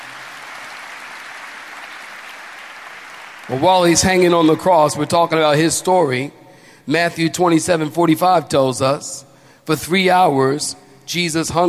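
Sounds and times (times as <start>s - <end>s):
audience clapping hands: 0.0s - 5.2s
speech: 3.5s - 11.6s.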